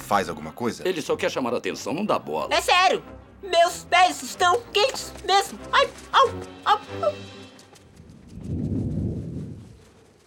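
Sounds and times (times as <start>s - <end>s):
speech: 0.1s - 7.4s
thunder rumbling: 7.9s - 9.8s.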